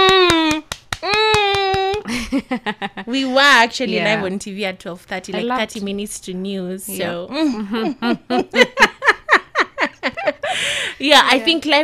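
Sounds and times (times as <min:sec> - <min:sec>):
brisk evenly spaced hand claps: 0:00.0 - 0:02.4
laughter: 0:02.0 - 0:03.3, 0:07.5 - 0:10.8
speech: 0:02.4 - 0:08.9, 0:10.6 - 0:11.8.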